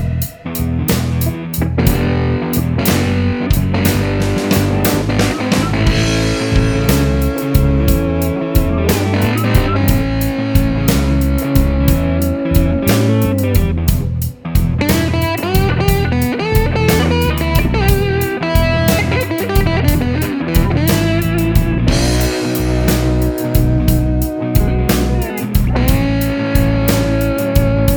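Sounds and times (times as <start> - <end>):
slide guitar: 0.0 - 27.9.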